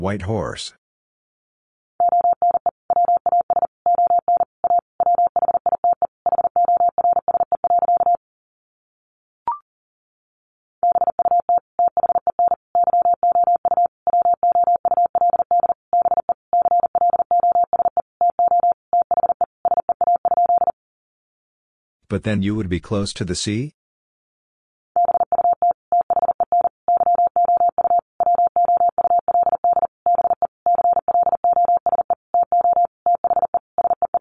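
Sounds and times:
speech: 0.0 - 0.8, 22.1 - 23.8
fast Morse code beeps at 40 words per minute: 2.0 - 8.2, 10.8 - 20.7, 25.0 - 34.1.

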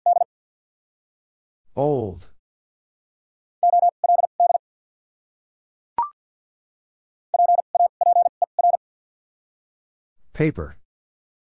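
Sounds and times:
Morse code beeps spelling a word: 0.0 - 0.3, 3.6 - 4.6, 7.4 - 8.8
speech: 1.8 - 2.3, 10.4 - 10.8.

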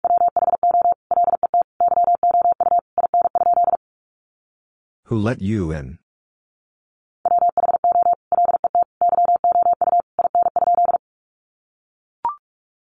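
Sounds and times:
Morse code beeps at one steady pitch: 0.0 - 3.8, 7.3 - 11.0
person speaking: 5.1 - 6.0.

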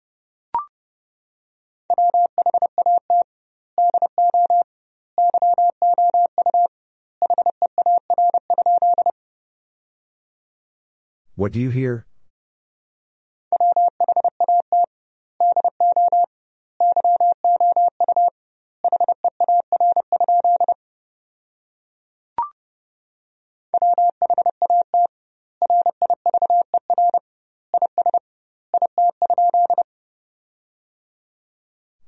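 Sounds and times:
Morse code tones at 30 wpm: 1.9 - 3.2, 3.8 - 4.6, 5.2 - 9.1, 13.6 - 18.3, 18.9 - 20.8, 23.8 - 27.2, 28.8 - 29.8
speech: 11.4 - 12.1.

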